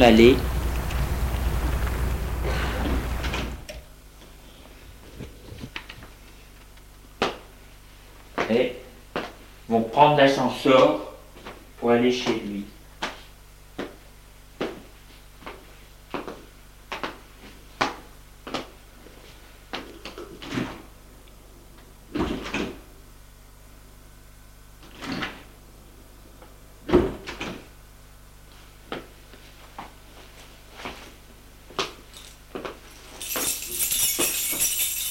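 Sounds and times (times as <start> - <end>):
speech: 0.0 - 0.5, 9.7 - 11.0, 11.8 - 12.8
faint hum: 0.0 - 35.0
door opening and closing: 0.8 - 3.7.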